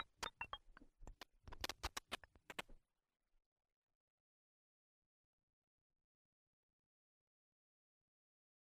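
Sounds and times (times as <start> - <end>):
noise: 0.0 - 2.8.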